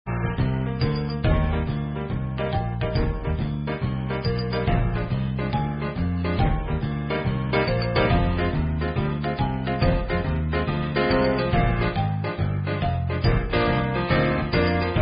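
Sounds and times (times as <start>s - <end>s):
instrumental music: 0.1s - 15.0s.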